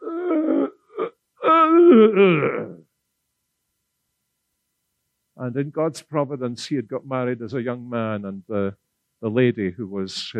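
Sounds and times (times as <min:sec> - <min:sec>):
voice imitating groaning and grunting: 0:00.0 - 0:02.9
speech: 0:02.0 - 0:02.7, 0:05.5 - 0:10.3.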